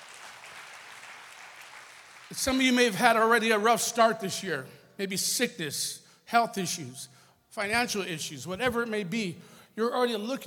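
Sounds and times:
audience clapping: 0.0 - 2.7
speech: 2.3 - 10.4.

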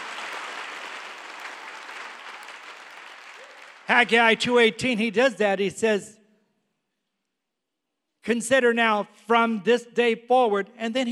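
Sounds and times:
church congregation clapping and shouting: 0.0 - 4.8
speech: 3.9 - 6.2, 8.2 - 11.1.

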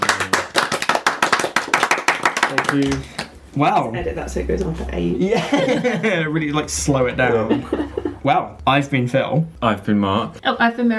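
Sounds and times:
small group applauding with sharp, crisp hand claps: 0.0 - 3.4
speech: 2.5 - 10.9
laughter: 5.2 - 8.4.

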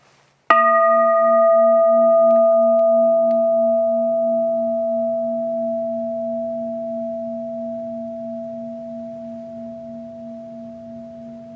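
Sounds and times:
bell being struck and ringing: 0.5 - 11.5.

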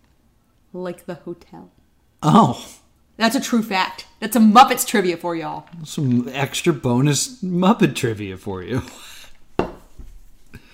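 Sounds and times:
speech: 0.7 - 9.1
glass set down hard on a table: 9.6 - 10.1.

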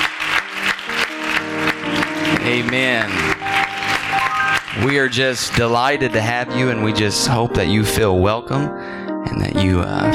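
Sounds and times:
audience hand clapping: 0.0 - 6.0
speech: 2.5 - 3.3, 4.8 - 10.1.

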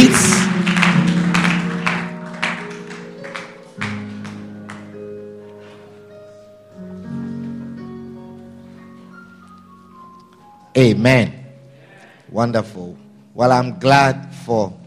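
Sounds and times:
rhythmic group clapping: 0.0 - 5.2
sustained keyboard chords: 0.0 - 14.8
speech: 10.8 - 11.4, 12.3 - 14.8.

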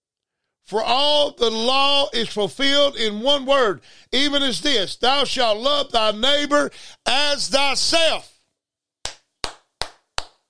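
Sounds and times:
speech: 0.7 - 8.3
hands clapping: 9.0 - 10.4.

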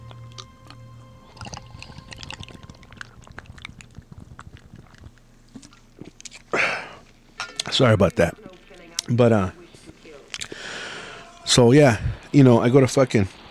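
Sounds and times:
person sipping beer from a crowler: 0.0 - 7.2
low steady hum: 0.0 - 13.4
breathy gasp after the swallow: 6.5 - 7.0, 10.4 - 11.4
speech: 7.8 - 8.5, 9.1 - 9.6, 11.6 - 13.4.

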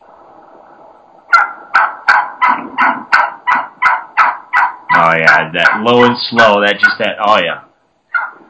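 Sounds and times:
excited aggressive turkey hen yelping: 1.3 - 6.2, 8.1 - 8.4
speech: 5.1 - 7.6.

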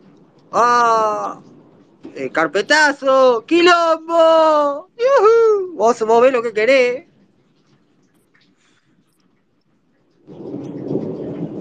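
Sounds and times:
thunder in a thunderstorm: 0.0 - 4.6, 10.2 - 11.5
speech: 0.5 - 1.5, 2.2 - 7.1.

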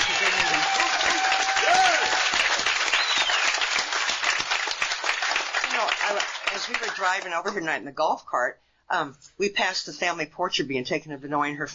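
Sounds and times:
audience round of applause: 0.0 - 7.3
speech: 6.7 - 11.7.

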